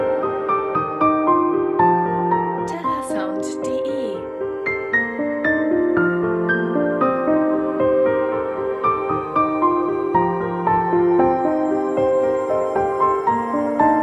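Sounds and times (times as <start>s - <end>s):
piano: 0.0s - 14.0s.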